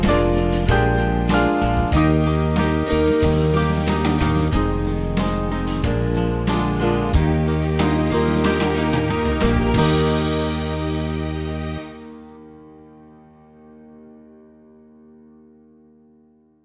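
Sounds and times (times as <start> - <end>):
band music: 0.0 - 12.2.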